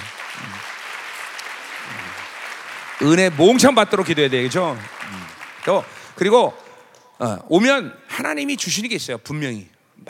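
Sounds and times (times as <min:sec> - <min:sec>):
audience applause: 0:00.0 - 0:06.9
speech: 0:03.0 - 0:05.0, 0:05.6 - 0:06.6, 0:07.2 - 0:10.0.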